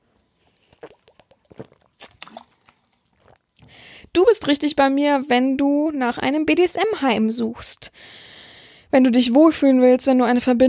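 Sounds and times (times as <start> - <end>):
person sipping a drink: 0.2 - 3.9
speech: 4.2 - 8.2, 8.9 - 10.6.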